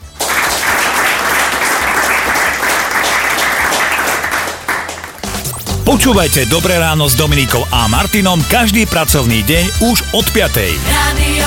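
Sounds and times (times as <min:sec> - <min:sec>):
loud sustained applause from a crowd: 0:00.0 - 0:06.3
speech: 0:05.9 - 0:11.4.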